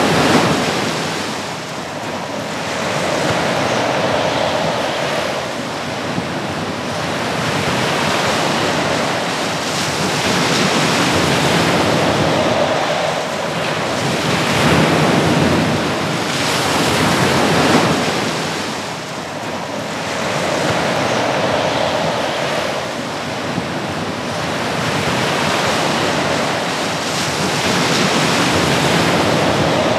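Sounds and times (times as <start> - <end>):
wind: 0.0 - 29.9.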